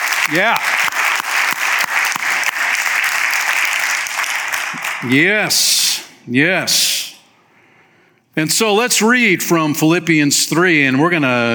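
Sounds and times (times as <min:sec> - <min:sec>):
audience applause: 0:00.0 - 0:05.2
speech: 0:00.3 - 0:00.8, 0:04.7 - 0:07.0, 0:08.4 - 0:11.5.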